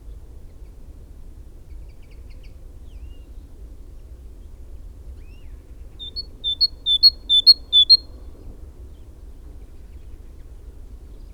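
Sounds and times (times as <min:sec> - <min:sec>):
great tit singing: 0:06.0 - 0:08.0.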